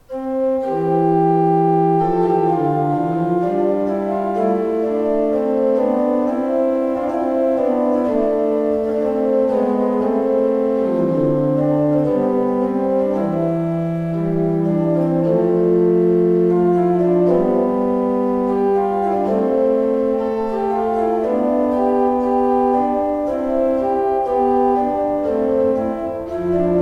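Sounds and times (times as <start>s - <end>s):
pipe organs: 0.0s - 26.8s.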